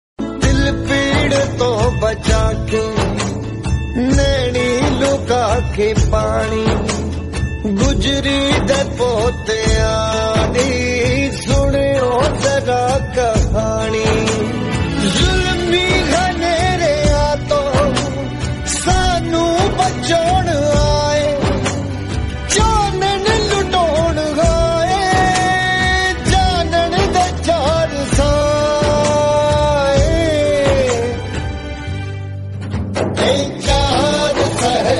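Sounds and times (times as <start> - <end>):
Punjabi music: 0.2 - 34.9.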